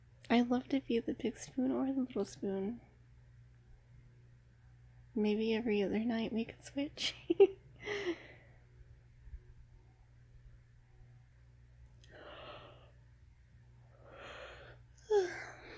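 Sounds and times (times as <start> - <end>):
speech: 0.3 - 2.9, 5.2 - 8.2
yawn: 15.0 - 15.7.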